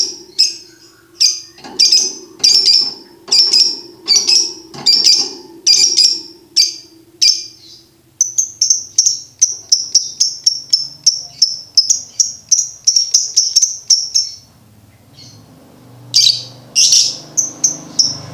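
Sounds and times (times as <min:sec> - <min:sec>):
low steady hum: 0:00.0 - 0:09.9
lovebird chattering chirps: 0:00.0 - 0:14.5, 0:16.1 - 0:18.2.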